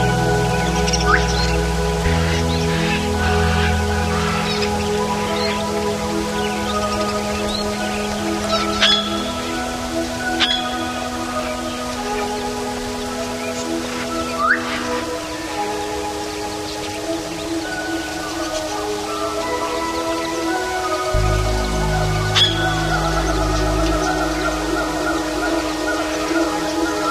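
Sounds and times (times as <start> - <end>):
Amazon rainforest ambience: 0.0 - 27.0.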